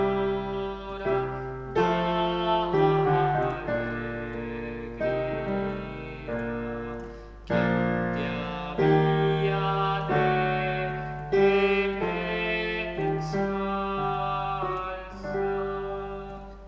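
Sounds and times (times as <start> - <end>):
soprano singing: 0.0 - 16.6.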